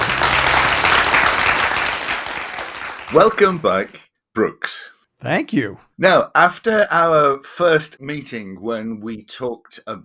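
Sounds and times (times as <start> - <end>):
audience applause: 0.0 - 4.0
speech: 3.1 - 10.0.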